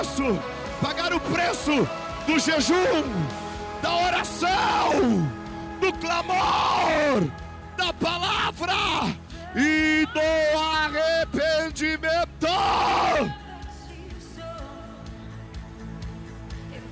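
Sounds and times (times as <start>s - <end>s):
audience at a religious meeting shouting: 0.0s - 9.1s, 12.4s - 13.4s
speech: 0.2s - 13.4s
cries and whoops: 3.7s - 7.4s, 12.4s - 13.4s.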